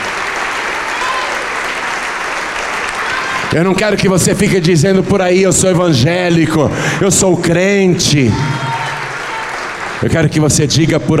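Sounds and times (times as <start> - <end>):
audience applauding: 0.0 - 4.2, 7.6 - 11.1
speech: 3.5 - 8.6, 10.0 - 11.1.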